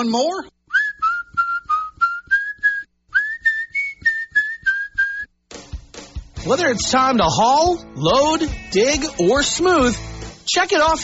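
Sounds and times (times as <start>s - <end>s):
speech: 0.0s - 0.6s, 6.4s - 11.0s
person whistling a tune: 0.7s - 5.3s.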